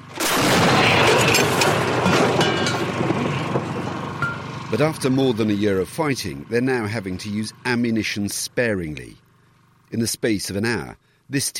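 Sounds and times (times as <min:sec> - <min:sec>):
50-year-old Soviet D-20 artillery gun firing in eastern Ukraine: 0:00.2 - 0:03.8
speech: 0:04.7 - 0:09.2, 0:09.9 - 0:11.5.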